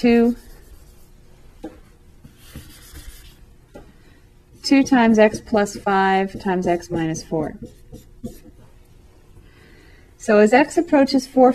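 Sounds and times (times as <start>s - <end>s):
speech: 0.0s - 0.4s, 4.6s - 8.4s, 10.2s - 11.5s
erasing and writing on a board during a math lesson: 2.2s - 3.4s, 4.6s - 8.7s.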